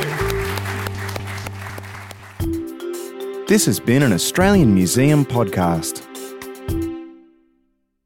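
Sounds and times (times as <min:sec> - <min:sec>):
audience applause: 0:00.0 - 0:02.5
speech: 0:03.5 - 0:06.2.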